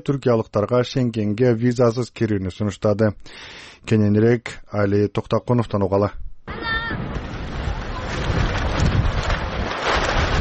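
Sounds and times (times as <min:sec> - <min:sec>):
speech: 0:00.0 - 0:07.1
strong wind blowing over a refugee tent camp: 0:06.5 - 0:10.3.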